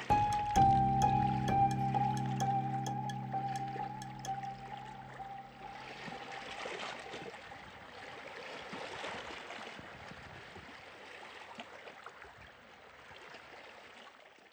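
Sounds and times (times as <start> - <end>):
synth pads: 0.0 - 6.3.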